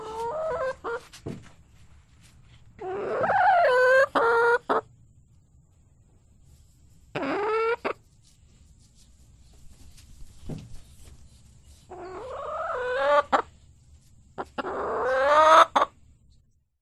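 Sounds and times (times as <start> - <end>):
chicken clucking: 0.0 - 1.1, 2.8 - 4.9, 7.0 - 8.1, 11.8 - 13.5, 14.4 - 16.0.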